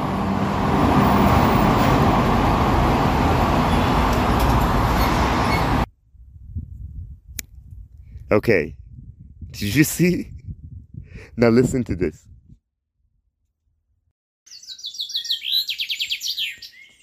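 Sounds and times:
passing traffic on a residential road: 0.0 - 5.9
speech: 8.4 - 8.8, 9.5 - 10.3, 11.4 - 12.3.

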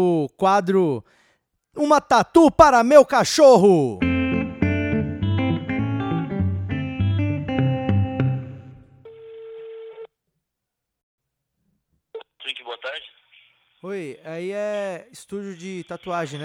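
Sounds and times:
speech: 0.0 - 1.2, 1.8 - 4.1, 13.8 - 16.4
upbeat music: 4.0 - 9.0
outgoing phone call ringback tone: 9.0 - 10.1.

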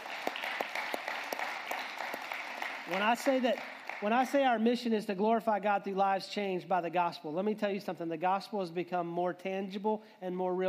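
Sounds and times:
crowd applause: 0.0 - 4.4
speech: 2.9 - 10.6.

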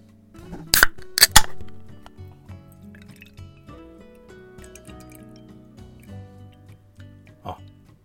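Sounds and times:
sustained tonal background: 1.0 - 7.9
hoppy beer pouring into a glass: 2.6 - 6.7
faint drips: 2.7 - 3.7, 4.6 - 6.8
glass clinks: 2.9 - 3.7, 4.6 - 6.2.

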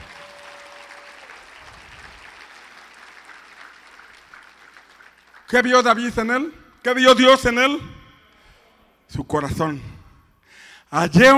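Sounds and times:
loud applause from audience: 0.0 - 5.6
speech: 5.5 - 8.0, 9.1 - 9.9, 10.9 - 11.3.

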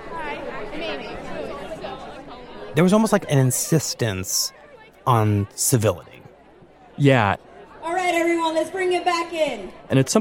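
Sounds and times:
rally crowd chatting and introducing themselves: 0.0 - 10.1
speech: 0.6 - 1.7, 2.8 - 6.2, 7.0 - 7.5, 8.1 - 10.1.

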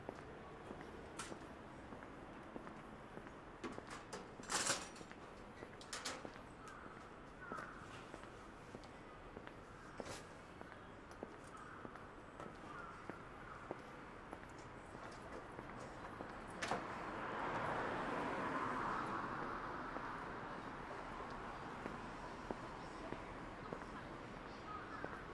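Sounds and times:
traffic murmur on a Shinjuku street on a Saturday morning: 0.0 - 25.3
vehicle passing: 16.8 - 22.5.

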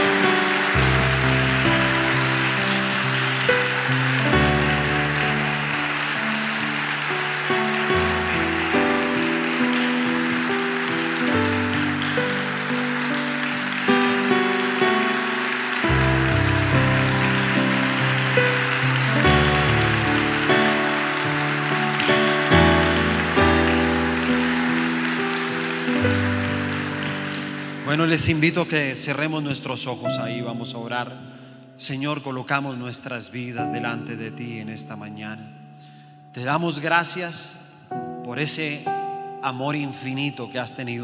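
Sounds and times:
audience applause: 0.0 - 29.2
speech: 28.0 - 31.2, 31.8 - 41.0.

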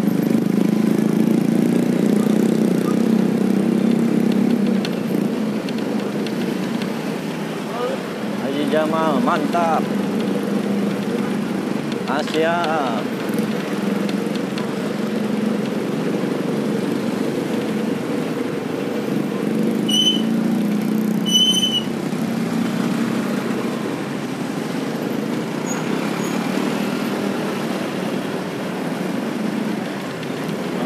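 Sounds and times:
traffic jam idling engines rumble: 0.0 - 30.8
speech: 8.9 - 10.0, 12.2 - 13.2
high-pitched horn beeps: 19.9 - 20.4, 21.2 - 21.9.

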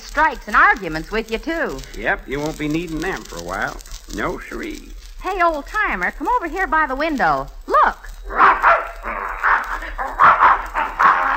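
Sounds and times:
faint noise: 0.0 - 11.3
speech: 0.2 - 9.2
dog barking: 8.3 - 11.3.

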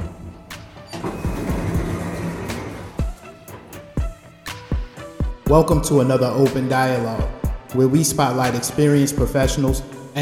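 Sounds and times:
doors opening: 0.0 - 4.7
speech: 5.5 - 10.2.

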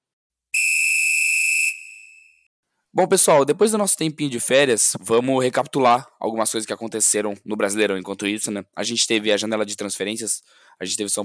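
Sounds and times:
referee's whistle blast to start a football match: 0.6 - 2.5
speech: 3.0 - 11.2.

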